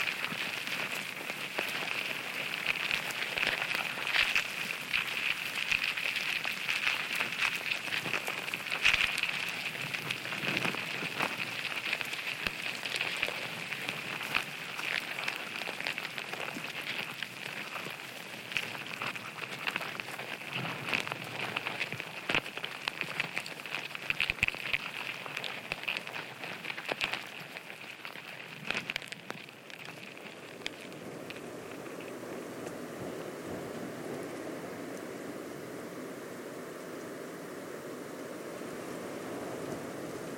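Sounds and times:
crackle and patter in coastal dunescape at Studland Nature Reserve: 0.0s - 40.3s.

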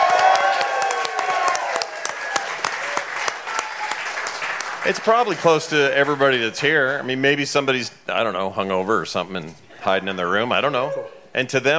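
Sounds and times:
people cheering: 0.0s - 6.4s
crowd applauding: 0.0s - 6.6s
speech: 4.8s - 11.7s.

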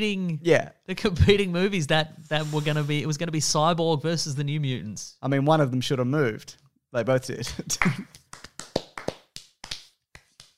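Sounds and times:
speech: 0.0s - 8.2s
out of time golf clap: 7.7s - 10.5s.

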